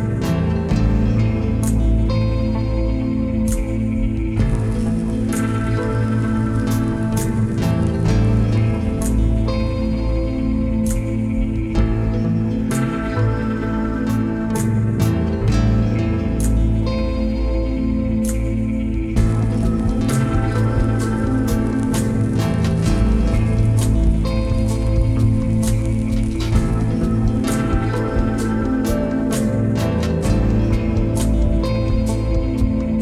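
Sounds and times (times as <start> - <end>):
ambient soundscape: 0.0 - 33.0.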